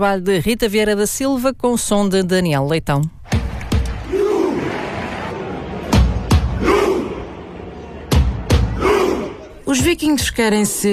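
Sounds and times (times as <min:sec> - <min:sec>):
speech: 0:00.0 - 0:03.2, 0:09.7 - 0:10.9
football fans chanting and roaring in unison: 0:03.6 - 0:09.6.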